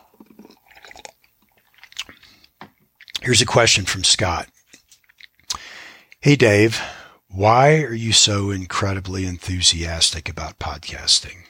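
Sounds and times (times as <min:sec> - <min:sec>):
person drinking water: 0:00.0 - 0:03.2, 0:05.1 - 0:06.2
speech: 0:03.2 - 0:04.6, 0:06.2 - 0:11.4.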